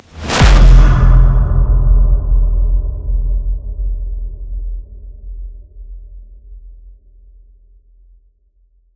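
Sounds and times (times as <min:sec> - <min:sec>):
dark impact: 0:00.0 - 0:06.0.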